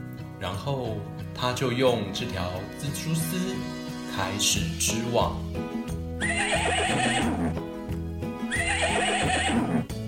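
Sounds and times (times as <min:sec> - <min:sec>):
speech: 0:00.4 - 0:06.0
horse whinnying: 0:06.2 - 0:07.6, 0:08.5 - 0:09.9.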